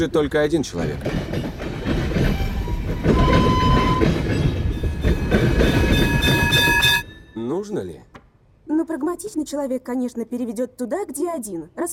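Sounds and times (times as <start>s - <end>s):
speech: 0.0s - 1.6s, 7.7s - 8.1s, 8.9s - 11.9s
tram rushing along rails: 0.0s - 7.4s
thin metallic squealing tones: 2.3s - 7.5s.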